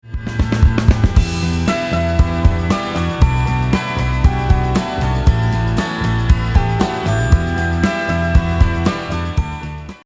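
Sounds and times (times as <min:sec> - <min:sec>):
powerful energetic music: 0:00.0 - 0:09.8.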